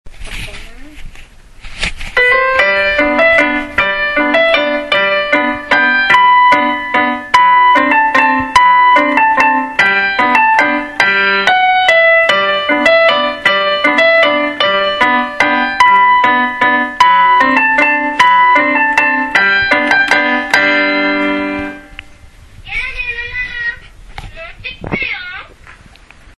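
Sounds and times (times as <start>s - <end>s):
waltz music: 2.2s - 22.1s.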